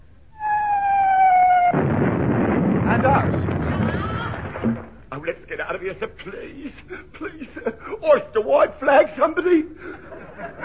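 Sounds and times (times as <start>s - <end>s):
incoming naval shell whistling: 0.3s - 1.9s
shell explosion near towed target ships: 0.4s - 5.1s
laughter: 3.7s - 4.4s, 6.6s - 8.3s, 9.4s - 10.6s
speech: 5.5s - 10.6s.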